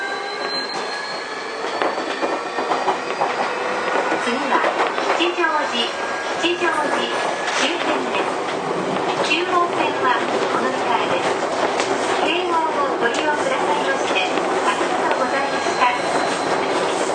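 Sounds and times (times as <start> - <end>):
Keio 1000 series train running express from Shibuya to Kichijoji: 0.0 - 17.1.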